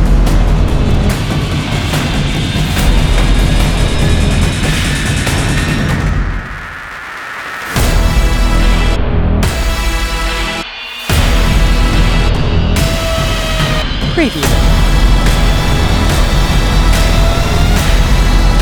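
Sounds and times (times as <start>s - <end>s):
dark cinematic horror thriller trailer music: 0.0s - 18.6s.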